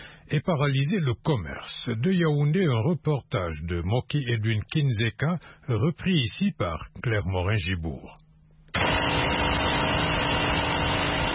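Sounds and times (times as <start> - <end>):
speech: 0.3 - 8.2
generator powering the flour mill of a bakery in Obili, Yaoundé: 8.8 - 11.3.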